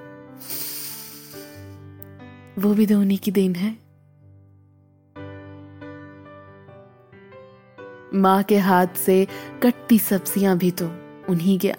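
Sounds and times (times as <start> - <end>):
pressure cooker whistle hissing steam: 0.4 - 1.8
speech: 2.6 - 3.8, 8.2 - 11.7.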